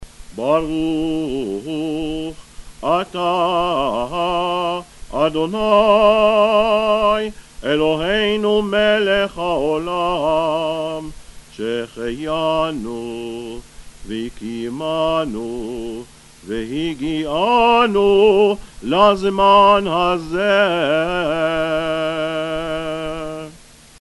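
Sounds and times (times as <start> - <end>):
chanted blessing: 0.4 - 23.6.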